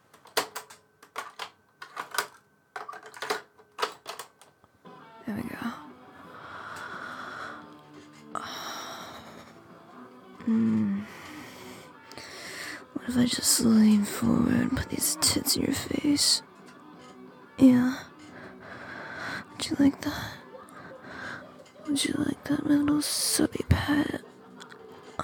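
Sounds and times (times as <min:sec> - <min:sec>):
cassette tape being flipped over: 0:00.0 - 0:04.6
speech: 0:05.3 - 0:05.7, 0:10.5 - 0:10.9, 0:13.1 - 0:16.5, 0:17.6 - 0:18.1, 0:19.7 - 0:20.4, 0:22.0 - 0:24.3.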